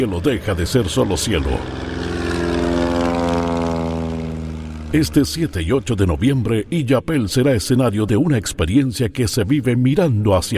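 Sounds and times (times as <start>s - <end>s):
speech: 0.0s - 2.0s, 4.9s - 10.5s
propeller aircraft engines droning at an air show in Yapel: 0.0s - 10.5s.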